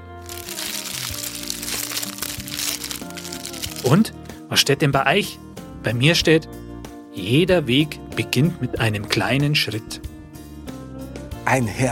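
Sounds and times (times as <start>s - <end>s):
several fortune cookies cracking open: 0.0s - 4.0s
speech: 3.8s - 6.6s, 7.2s - 10.1s, 11.5s - 11.9s.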